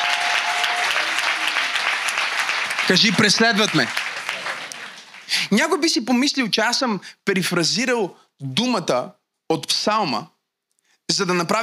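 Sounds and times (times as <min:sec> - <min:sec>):
audience applause: 0:00.0 - 0:05.5
speech: 0:02.9 - 0:04.0, 0:05.3 - 0:10.4, 0:11.1 - 0:11.6.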